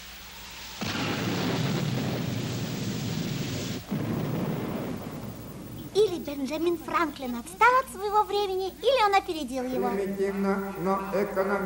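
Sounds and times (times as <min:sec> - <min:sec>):
loud roll of thunder during a thunderstorm: 0:00.8 - 0:06.0
speech: 0:06.1 - 0:11.6.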